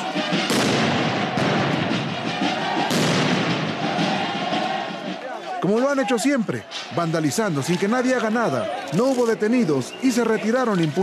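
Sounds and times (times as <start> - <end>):
crowd noise and shouting voices: 0.0 - 11.0
firecrackers and explosives bursting: 0.2 - 4.4
speech: 6.0 - 11.0.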